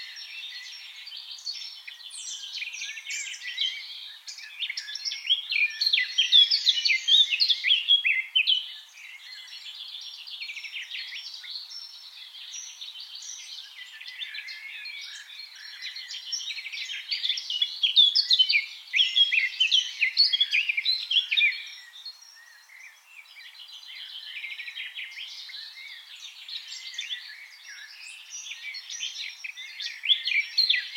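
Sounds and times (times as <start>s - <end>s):
Eurasian blackcap singing: 0.0s - 30.9s.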